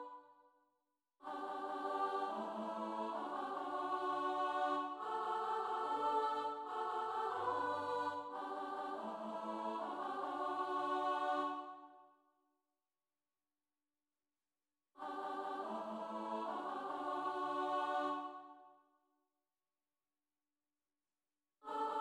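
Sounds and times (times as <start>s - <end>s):
soprano and alto voices: 1.2s - 11.8s, 15.0s - 18.4s.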